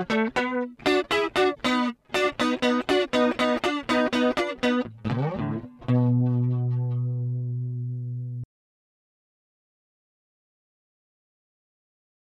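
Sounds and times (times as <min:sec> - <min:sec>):
Danelectro DJ20 guitar: 0:00.0 - 0:08.4.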